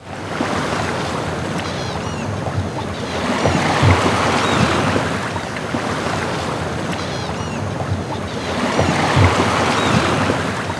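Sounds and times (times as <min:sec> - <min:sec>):
sea water: 0:00.0 - 0:10.7.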